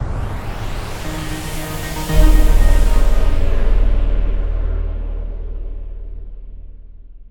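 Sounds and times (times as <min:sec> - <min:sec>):
transition end sound: 0:00.0 - 0:04.7.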